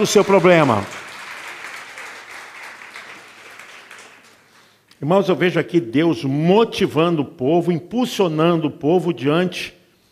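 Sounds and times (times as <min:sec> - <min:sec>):
speech: 0:00.0 - 0:01.0, 0:05.0 - 0:09.8
audience applauding: 0:00.0 - 0:04.8.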